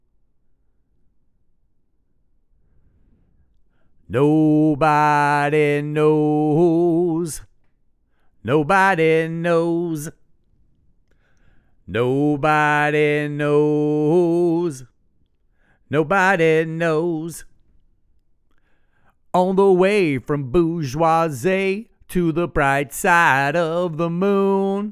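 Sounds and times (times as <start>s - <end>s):
person singing: 4.1s - 7.5s, 8.4s - 10.2s, 11.9s - 14.9s, 15.9s - 17.5s, 19.4s - 24.9s.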